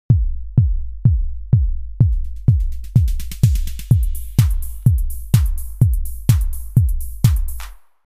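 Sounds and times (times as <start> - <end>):
kick drum: 0.0 - 7.8.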